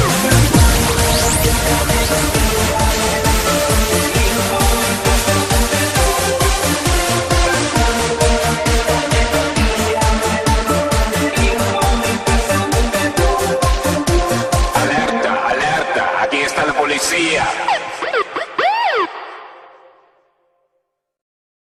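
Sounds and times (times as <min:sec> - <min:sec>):
techno music: 0:00.0 - 0:19.7
police siren in techno music: 0:00.5 - 0:06.5, 0:17.6 - 0:20.0.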